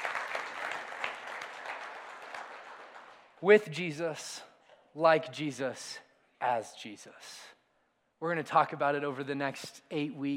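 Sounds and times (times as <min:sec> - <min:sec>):
audience clapping: 0:00.0 - 0:03.4
speech: 0:03.4 - 0:07.6, 0:08.2 - 0:10.3.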